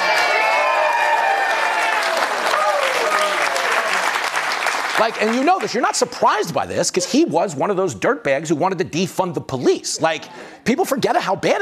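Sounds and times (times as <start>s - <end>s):
crowd booing and jeering: 0.0s - 4.0s
speech: 5.0s - 11.6s.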